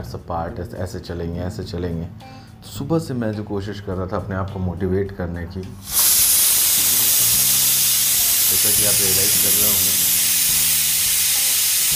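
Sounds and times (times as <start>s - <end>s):
speech: 0.0s - 6.0s, 8.5s - 10.1s
pressure cooker whistle: 5.8s - 11.9s.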